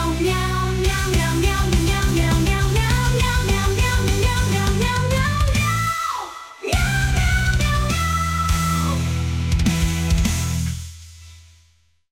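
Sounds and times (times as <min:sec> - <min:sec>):
melodic metal music with meows: 0:00.0 - 0:06.0, 0:06.8 - 0:10.9.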